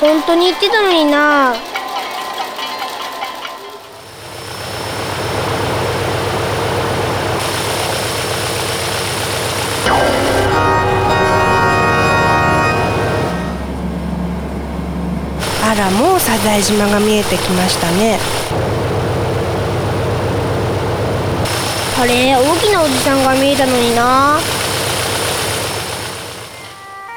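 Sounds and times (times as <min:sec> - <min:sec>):
speech: 0:00.0 - 0:01.8, 0:15.8 - 0:18.8, 0:22.0 - 0:24.6
airplane engine drone in flight: 0:04.4 - 0:27.0.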